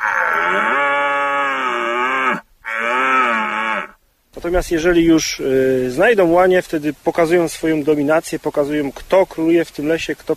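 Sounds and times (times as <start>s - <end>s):
red deer stag roaring during the rut: 0.0s - 4.0s
speech: 4.5s - 10.3s.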